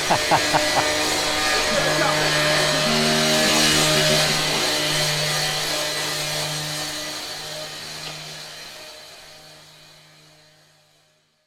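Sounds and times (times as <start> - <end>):
laughter: 0.0 - 5.9
grinder running: 0.0 - 10.5.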